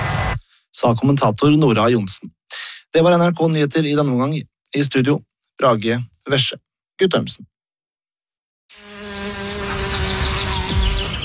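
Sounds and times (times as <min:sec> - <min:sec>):
speech: 0:00.8 - 0:07.5
bumblebee buzzing: 0:08.7 - 0:11.2.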